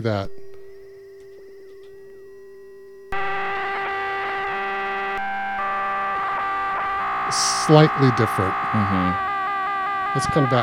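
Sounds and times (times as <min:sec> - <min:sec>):
speech: 0:00.0 - 0:00.4, 0:07.3 - 0:09.3, 0:10.1 - 0:10.6
loud buzzy synthesizer tone with pitch modulation: 0:03.1 - 0:10.6.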